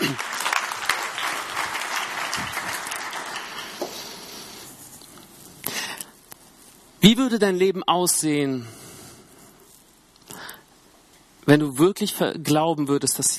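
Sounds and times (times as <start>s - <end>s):
audience applause: 0.0s - 4.6s
speech: 7.0s - 8.8s, 11.5s - 13.3s.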